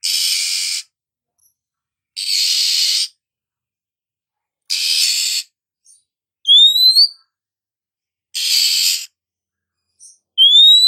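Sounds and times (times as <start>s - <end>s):
female Oriental magpie-robin calling with rising whistled slurs: 0.0s - 0.8s, 2.2s - 3.1s, 4.7s - 5.5s, 6.5s - 7.2s, 8.4s - 9.1s, 10.0s - 10.8s.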